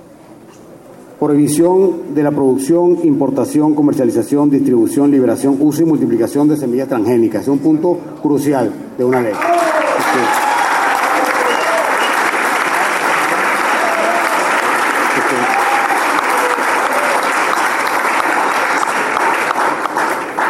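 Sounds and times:
speech: 0:01.2 - 0:10.4
audience applause: 0:09.3 - 0:20.4.

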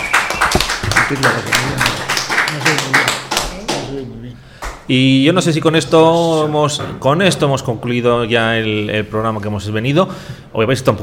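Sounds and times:
audience applause for a classmate: 0:00.0 - 0:03.9
speech: 0:01.1 - 0:01.9, 0:04.9 - 0:11.0.

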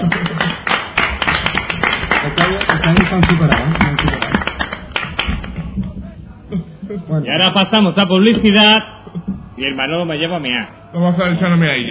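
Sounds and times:
audience applause: 0:00.0 - 0:05.8
speech: 0:07.3 - 0:08.9, 0:09.6 - 0:11.8.

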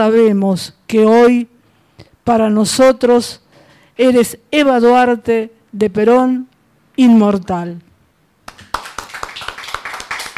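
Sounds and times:
speech: 0:00.0 - 0:01.5, 0:02.3 - 0:03.4, 0:04.0 - 0:07.9
many hands clapping: 0:08.4 - 0:10.3.

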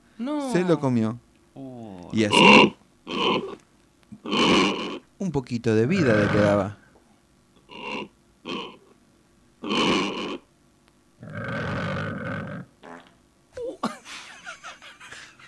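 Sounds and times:
speech: 0:00.2 - 0:03.6, 0:04.2 - 0:06.8
pig farting: 0:02.3 - 0:03.6, 0:04.2 - 0:05.0, 0:06.0 - 0:06.6, 0:07.7 - 0:08.9, 0:09.6 - 0:10.4, 0:11.2 - 0:13.2
laughter: 0:13.6 - 0:15.4.

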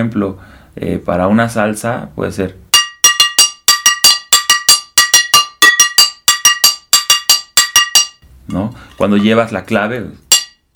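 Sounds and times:
speech: 0:00.0 - 0:02.6, 0:08.5 - 0:10.2
frying pan struck like a cowbell: 0:02.7 - 0:08.2, 0:10.3 - 0:10.7.

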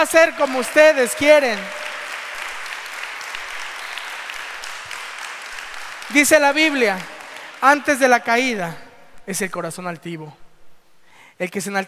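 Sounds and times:
speech: 0:00.0 - 0:01.8, 0:06.1 - 0:10.4, 0:11.4 - 0:11.8
church congregation in Yajalón applauding: 0:00.0 - 0:08.8.

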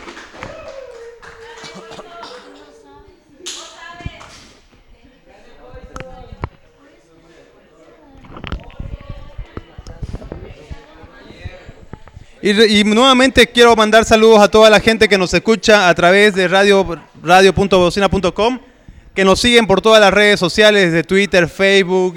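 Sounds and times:
audience applause: 0:00.0 - 0:02.0
speech: 0:12.4 - 0:22.1.

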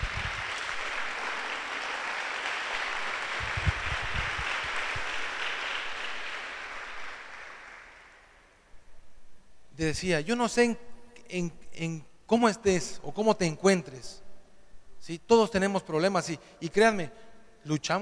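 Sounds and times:
audience applauding: 0:00.0 - 0:08.4
speech: 0:09.8 - 0:14.2, 0:15.0 - 0:18.0.

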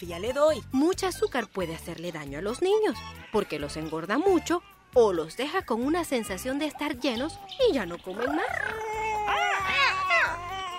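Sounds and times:
speech: 0:00.0 - 0:09.4
baby girl crying: 0:08.2 - 0:10.7.

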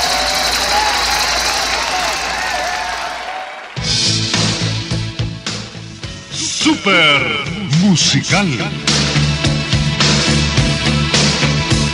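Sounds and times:
rhythmic music: 0:00.0 - 0:03.2, 0:03.8 - 0:11.9
crowd applauding and cheering for the winners: 0:00.0 - 0:04.5
speech: 0:06.8 - 0:09.0.

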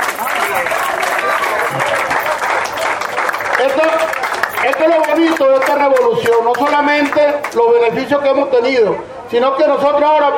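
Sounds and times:
audience applause: 0:00.0 - 0:07.6
speech: 0:05.5 - 0:10.3.

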